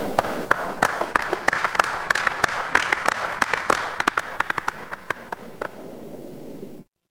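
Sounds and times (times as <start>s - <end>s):
crowd applause: 0.2s - 5.8s.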